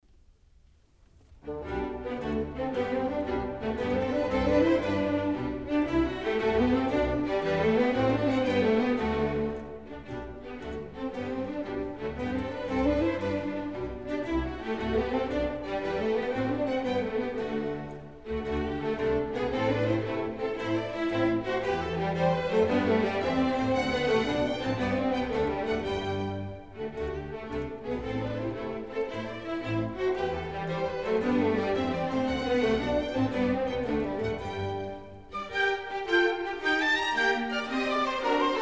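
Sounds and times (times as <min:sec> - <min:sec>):
orchestral suite: 0:01.2 - 0:38.6.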